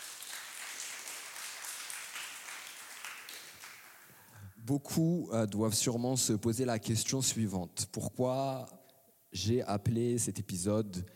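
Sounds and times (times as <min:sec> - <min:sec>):
audience applause: 0:00.0 - 0:04.2
speech: 0:04.7 - 0:11.1.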